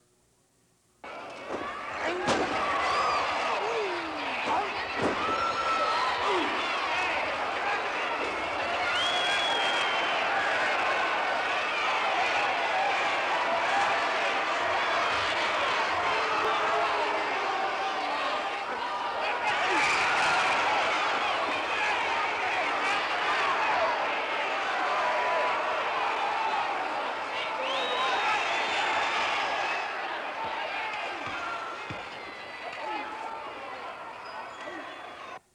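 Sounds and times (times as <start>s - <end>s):
crowd cheering at a sporting event: 1.0s - 35.4s.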